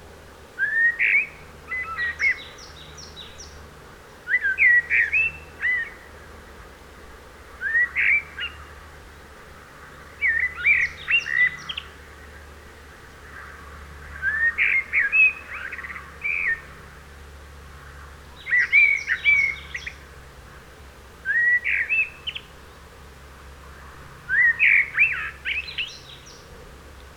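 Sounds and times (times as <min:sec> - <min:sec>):
Turdus merula common blackbird singing mellow whistled notes: 0:00.6 - 0:03.3, 0:04.3 - 0:05.9, 0:07.6 - 0:08.6, 0:10.2 - 0:11.9, 0:14.2 - 0:16.6, 0:18.4 - 0:20.0, 0:21.3 - 0:22.4, 0:24.3 - 0:26.3.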